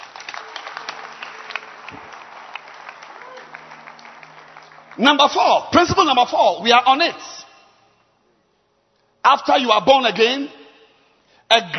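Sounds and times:
audience clapping hands: 0.0s - 6.2s
speech: 5.0s - 7.4s, 9.2s - 10.6s, 11.5s - 11.7s.

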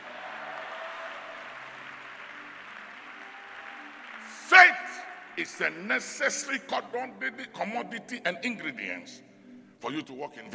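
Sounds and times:
audience clapping hands: 0.0s - 6.6s
speech: 5.4s - 10.5s.

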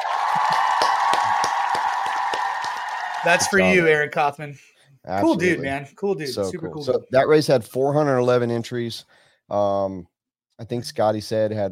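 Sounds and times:
applause: 0.0s - 3.7s
speech: 0.4s - 0.6s, 3.2s - 11.6s.

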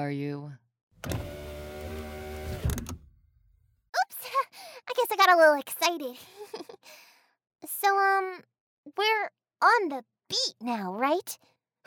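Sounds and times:
speech: 0.0s - 1.2s, 5.0s - 6.6s, 7.6s - 11.8s
car power window closing: 1.0s - 3.0s.

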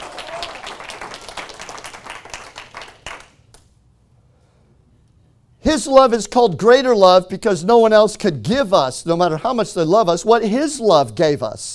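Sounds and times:
audience clapping hands: 0.0s - 3.7s
speech: 5.6s - 11.7s.

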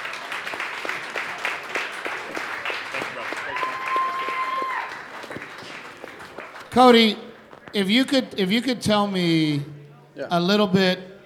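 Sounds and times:
audience applause: 0.0s - 7.6s
speech: 6.8s - 11.1s.

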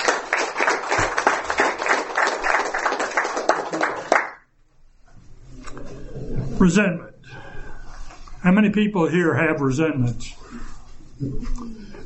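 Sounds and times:
audience applause welcoming panelists at a recovery-meeting marathon: 0.0s - 4.4s
speech: 6.6s - 7.2s, 8.4s - 10.4s.

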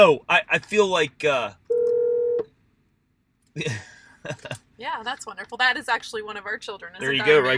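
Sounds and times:
speech: 0.0s - 1.6s, 3.6s - 7.5s
electronic phone tone signalling an incoming call: 1.7s - 2.5s.

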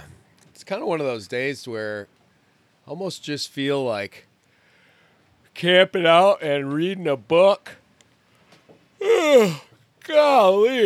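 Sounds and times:
speech: 0.7s - 2.2s, 2.9s - 4.3s, 5.6s - 7.8s, 9.0s - 10.8s
person yawning: 9.0s - 10.8s.

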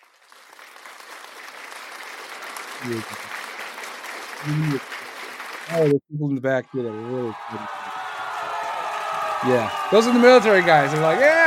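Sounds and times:
audience clapping: 0.0s - 6.0s, 6.8s - 11.4s
speech: 2.8s - 3.3s, 4.4s - 5.0s, 5.7s - 7.8s, 9.4s - 11.4s.

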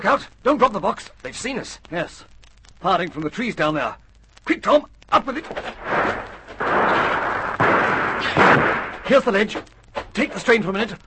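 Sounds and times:
speech: 0.0s - 5.9s, 9.1s - 11.0s
constant noisy hiss: 0.0s - 11.0s
gunshots fired from the trees: 5.8s - 9.2s.

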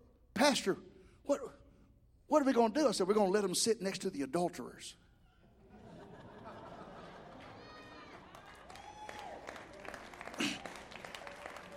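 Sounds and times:
speech: 0.4s - 1.6s, 2.3s - 5.0s
laughter: 5.4s - 8.7s
audience clapping: 7.2s - 11.7s.

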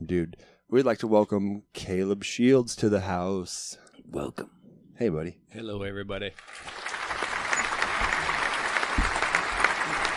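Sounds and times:
speech: 0.1s - 6.9s
applause and cheering: 6.4s - 10.1s.

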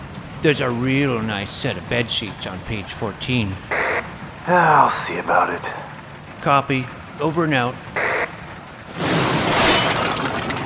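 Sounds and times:
speech: 0.4s - 3.8s, 4.5s - 5.8s, 6.4s - 8.0s
thunder crash from nearby lightning strike: 8.9s - 10.6s.

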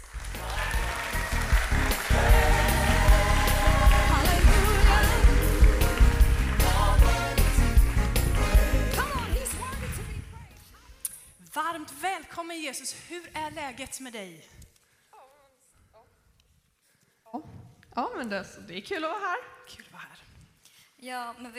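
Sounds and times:
applause: 0.0s - 10.4s
speech: 12.7s - 14.6s, 17.3s - 20.2s, 21.0s - 21.5s.

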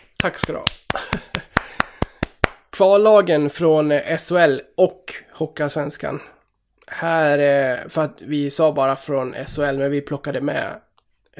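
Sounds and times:
hand claps: 0.0s - 2.7s
speech: 0.2s - 1.4s, 2.8s - 10.8s.

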